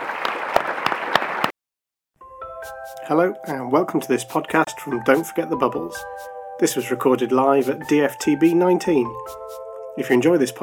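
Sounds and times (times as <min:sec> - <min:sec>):
audience applause at the DFTB 19 live conference recording: 0:00.0 - 0:01.5
speech: 0:02.9 - 0:10.6.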